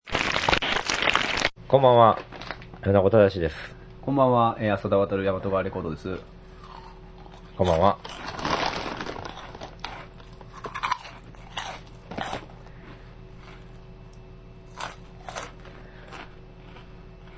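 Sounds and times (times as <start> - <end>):
person munching crunchy snack: 0.1 - 1.5, 6.5 - 13.8, 14.7 - 17.3
speech: 1.7 - 6.3, 7.6 - 8.2.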